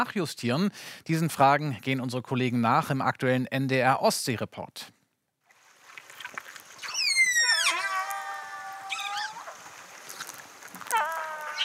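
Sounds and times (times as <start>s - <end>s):
speech: 0.0s - 5.0s
whales communicating: 6.8s - 9.8s, 10.8s - 11.6s.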